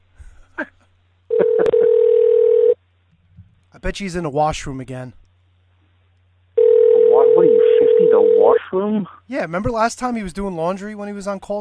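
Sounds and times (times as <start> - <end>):
phone dialing tone while adding call participant: 1.3 - 2.8, 6.6 - 8.6
speech: 3.8 - 5.2, 8.7 - 11.5.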